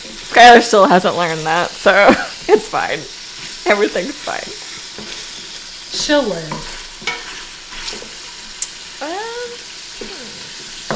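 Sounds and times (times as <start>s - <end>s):
sausage meat in casings frying in a pan: 0.0s - 10.9s
speech: 0.4s - 4.6s, 5.9s - 6.7s
stirring clicks and scrapes: 3.4s - 8.7s.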